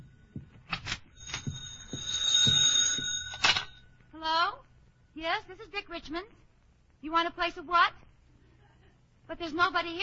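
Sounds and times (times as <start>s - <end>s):
telephone ringing: 1.1s - 4.0s
speech: 5.2s - 8.1s, 9.3s - 10.0s.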